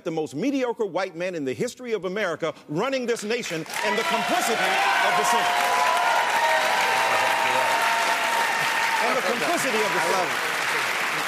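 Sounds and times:
speech: 0:00.0 - 0:05.9, 0:09.1 - 0:10.5
crowd audience cheering and applause: 0:03.6 - 0:11.2.

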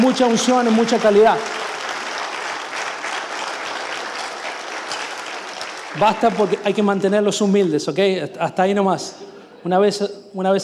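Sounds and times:
audience applause for musicians: 0:00.0 - 0:07.2
speech: 0:00.1 - 0:01.6, 0:06.0 - 0:10.6.

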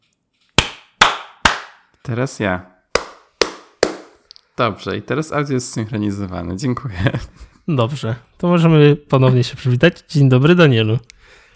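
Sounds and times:
hand clap for audio synchronization: 0:00.6 - 0:01.8, 0:03.0 - 0:04.2
speech: 0:02.1 - 0:02.7, 0:04.6 - 0:11.4.

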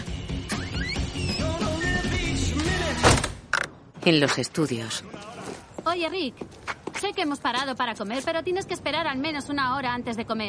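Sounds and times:
music: 0:00.0 - 0:03.6
house door shutting with a thud: 0:03.0 - 0:03.4
speech: 0:04.0 - 0:10.4.

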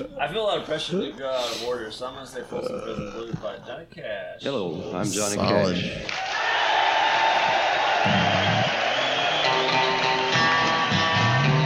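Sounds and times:
speech: 0:00.0 - 0:06.6
prisoners cheering in live concert recording: 0:06.0 - 0:11.6
shouts and whoops: 0:06.1 - 0:10.3.

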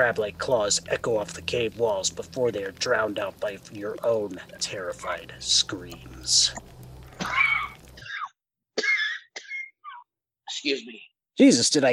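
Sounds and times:
speech: 0:00.0 - 0:07.4, 0:10.6 - 0:11.9
coughing after swallowing something: 0:07.1 - 0:10.1.

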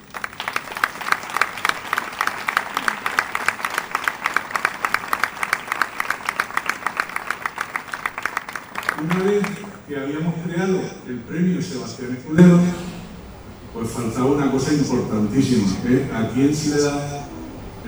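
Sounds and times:
audience applause: 0:00.0 - 0:09.9
speech: 0:09.0 - 0:12.9, 0:13.8 - 0:17.2.

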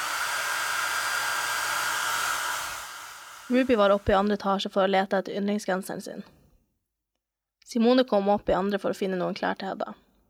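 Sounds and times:
hair dryer blowing: 0:00.0 - 0:04.3
speech: 0:03.5 - 0:06.4, 0:07.7 - 0:10.0.

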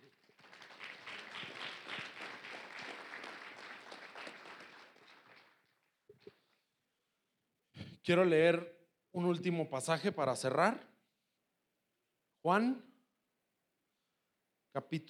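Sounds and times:
audience applause: 0:00.0 - 0:05.8
speech: 0:08.0 - 0:10.9, 0:12.4 - 0:12.9, 0:14.8 - 0:15.0.

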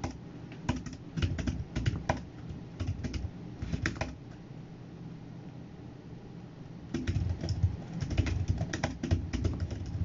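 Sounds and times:
computer keyboard typing at a desk: 0:00.0 - 0:04.2, 0:06.9 - 0:10.0.

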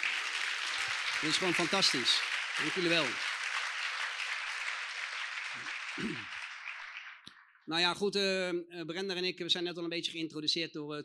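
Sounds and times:
audience applause: 0:00.0 - 0:07.6
speech: 0:01.2 - 0:03.3, 0:07.7 - 0:11.0.

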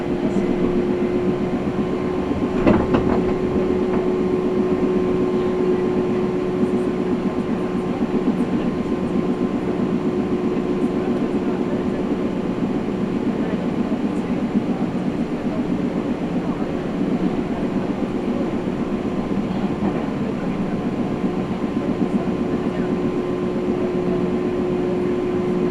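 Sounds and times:
Nagoya Railroad Mikawa Line train rolling from Chiryu to Hekinan: 0:00.0 - 0:25.7
constant whining tone: 0:00.0 - 0:25.7.

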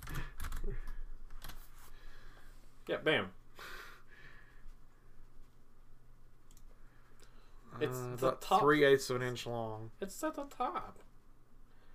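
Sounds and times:
fingers tapping on a computer keyboard: 0:00.0 - 0:01.6
speech: 0:02.9 - 0:03.7, 0:07.8 - 0:11.1.

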